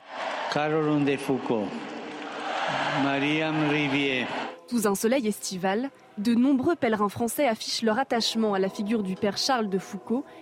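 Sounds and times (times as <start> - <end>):
crowd of faithful cheering acclamations: 0.0 - 4.6
speech: 0.5 - 1.9, 3.0 - 10.4
loud sustained shouts: 2.2 - 3.4.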